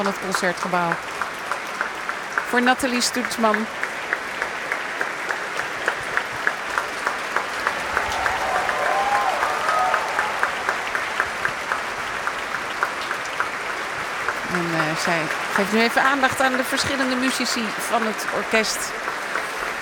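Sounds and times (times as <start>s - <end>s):
speech: 0.0s - 1.2s, 2.5s - 3.8s, 14.6s - 19.1s
large concert hall audience applause: 0.0s - 19.7s.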